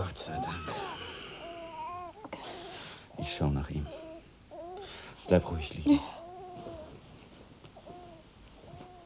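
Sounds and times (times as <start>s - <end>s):
baby crying: 0.4s - 7.0s
speech: 3.3s - 4.0s, 5.3s - 6.2s.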